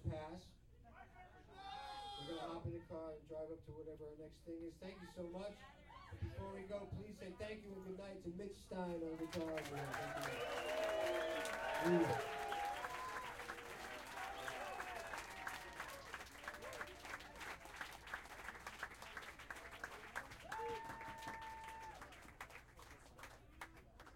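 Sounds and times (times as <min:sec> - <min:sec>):
speech: 0:00.2 - 0:00.6, 0:02.2 - 0:12.4
crowd applauding: 0:09.2 - 0:24.1
cheers and shouted voices: 0:09.6 - 0:16.1.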